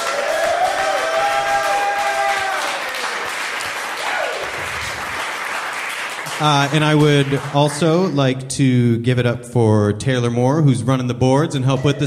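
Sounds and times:
live crowd applauding: 0.0s - 8.2s
speech: 6.4s - 12.0s.

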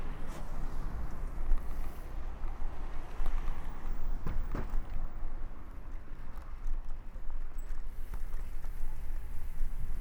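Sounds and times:
traffic rumble on busy town roads at night: 0.0s - 10.0s
wind during a bike ride: 0.0s - 10.0s
bike wheels clattering over bumps: 3.1s - 7.6s.

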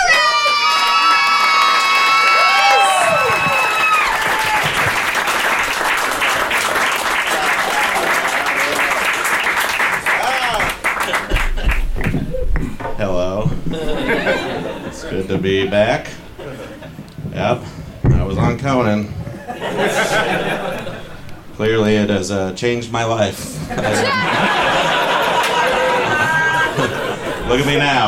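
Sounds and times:
audience applause and cheering: 0.0s - 12.4s, 24.0s - 28.0s
laughter: 10.2s - 12.4s, 13.6s - 17.2s, 19.2s - 21.4s, 23.5s - 28.0s
speech: 15.4s - 16.2s, 17.4s - 17.7s, 18.4s - 19.2s, 21.6s - 24.6s, 27.5s - 28.0s.

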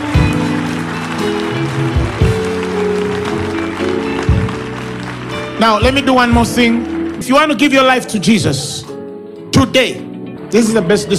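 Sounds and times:
audience clapping: 0.0s - 8.4s
speech: 5.6s - 8.8s, 9.6s - 11.1s.

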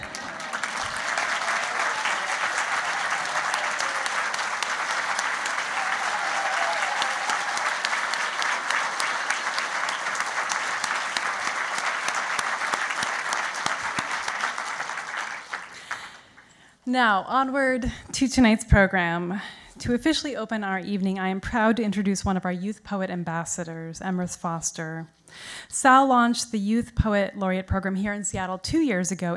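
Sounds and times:
audience cheers: 0.0s - 16.2s
large audience applauding: 0.0s - 16.4s
speech: 16.9s - 29.3s.

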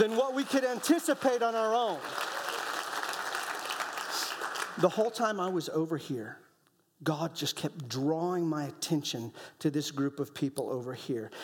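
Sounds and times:
speech: 0.0s - 2.4s, 4.8s - 6.4s, 7.0s - 11.4s
audience clapping: 0.0s - 5.1s.

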